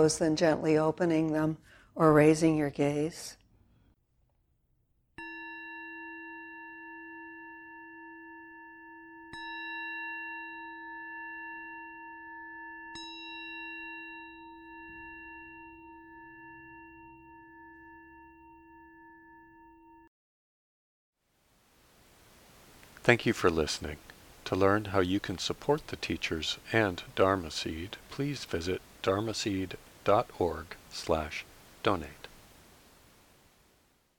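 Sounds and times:
speech: 0:00.0 - 0:03.4, 0:23.1 - 0:32.2
meditation bell ringing: 0:05.2 - 0:20.1
soft hiss: 0:21.3 - 0:34.1.

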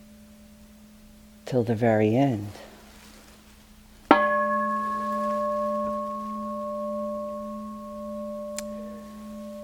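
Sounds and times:
meditation bell ringing and reverberating: 0:00.0 - 0:01.4, 0:04.1 - 0:09.6
speech: 0:01.5 - 0:02.6.

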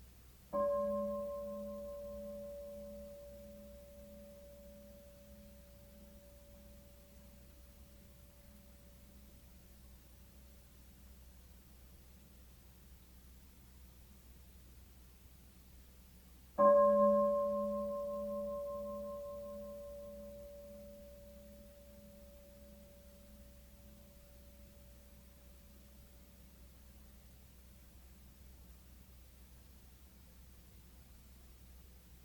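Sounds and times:
meditation bell struck and ringing: 0:00.6 - 0:09.4, 0:16.6 - 0:26.6.

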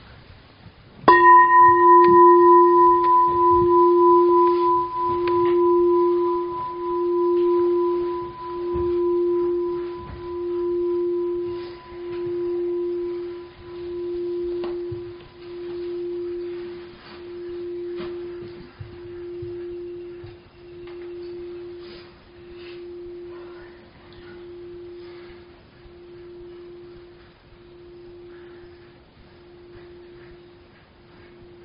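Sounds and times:
meditation bell ringing: 0:01.1 - 0:31.6.

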